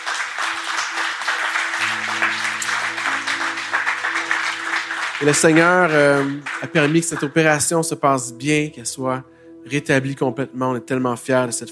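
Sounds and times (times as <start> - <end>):
church audience applauding: 0.0 - 7.6
speech: 5.2 - 11.7.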